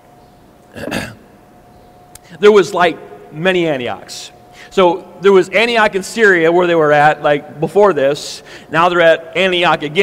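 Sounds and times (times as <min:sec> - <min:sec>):
faint hum: 0:00.0 - 0:10.0
speech: 0:00.7 - 0:01.0, 0:02.3 - 0:10.0
speaker drinking water: 0:00.7 - 0:01.2.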